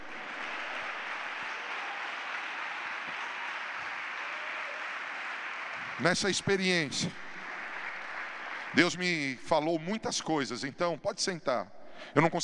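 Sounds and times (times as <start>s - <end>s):
audience shouting to the Lord: 0.0s - 6.1s
audience applauding: 0.0s - 10.3s
speech: 6.0s - 7.2s, 8.8s - 12.4s.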